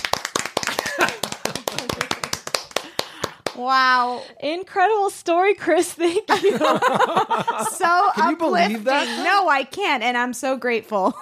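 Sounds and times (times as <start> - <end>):
sharp hand claps: 0.0 - 3.7
laughter: 0.7 - 2.3, 6.3 - 9.4
speech: 3.6 - 11.2.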